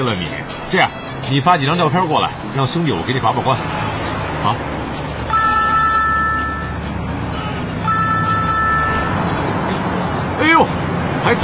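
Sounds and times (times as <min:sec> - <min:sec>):
steady traffic rumble: 0:00.0 - 0:11.4
speech: 0:00.1 - 0:03.8, 0:04.4 - 0:04.9
car horn blasts aimed at a swerving car: 0:05.3 - 0:06.8, 0:07.9 - 0:09.2.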